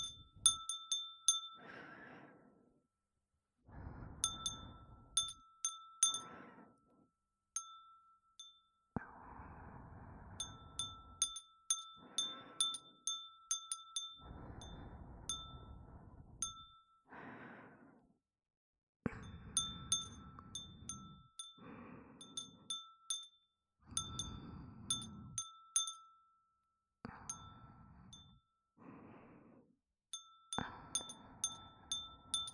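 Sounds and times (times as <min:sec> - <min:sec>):
glass wind chime: 0:00.0 - 0:01.7, 0:04.2 - 0:06.8, 0:07.6 - 0:09.0, 0:10.4 - 0:17.1, 0:19.2 - 0:26.5, 0:27.1 - 0:28.5, 0:30.2 - 0:32.5
breathing: 0:01.3 - 0:02.8, 0:03.6 - 0:05.4, 0:06.0 - 0:07.1, 0:09.0 - 0:13.1, 0:14.0 - 0:18.2, 0:19.1 - 0:22.8, 0:23.8 - 0:25.4, 0:27.1 - 0:29.8, 0:30.5 - 0:32.5.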